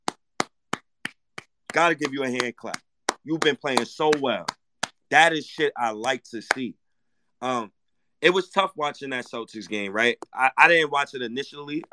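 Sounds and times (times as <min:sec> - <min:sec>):
single hand clap: 0:00.0 - 0:05.0
speech: 0:01.8 - 0:06.8, 0:07.4 - 0:11.9.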